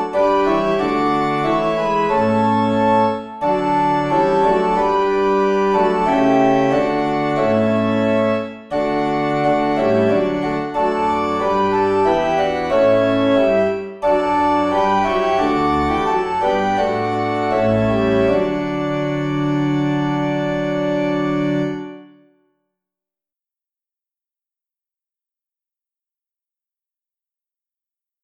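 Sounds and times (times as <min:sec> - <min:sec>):
organ playing hymns without words: 0:00.0 - 0:22.3.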